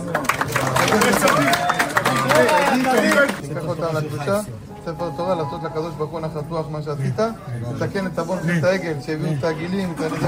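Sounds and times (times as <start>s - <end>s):
crowd clapping: 0.0s - 3.4s
overlapping voices and cheering chatter: 0.8s - 3.4s
speech: 2.4s - 10.2s.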